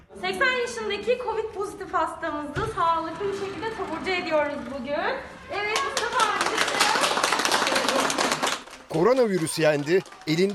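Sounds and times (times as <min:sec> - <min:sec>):
speech: 0:00.2 - 0:06.4, 0:08.9 - 0:10.5
crowd applause: 0:05.6 - 0:10.5.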